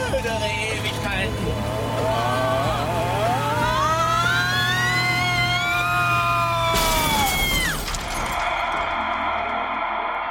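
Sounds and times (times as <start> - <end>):
car engine whine speeding toward an unfinished road curve: 0.0 - 10.2
crash with shattering: 6.7 - 10.2.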